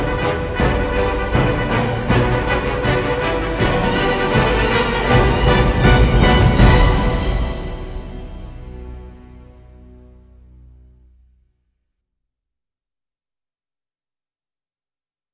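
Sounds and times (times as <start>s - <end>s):
dark fantasy music without choir: 0.0s - 11.2s.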